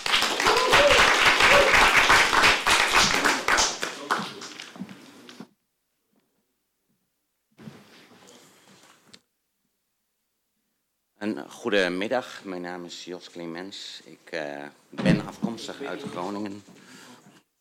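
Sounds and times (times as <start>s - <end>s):
crowd applauding: 0.0s - 4.8s
speech: 11.3s - 16.8s.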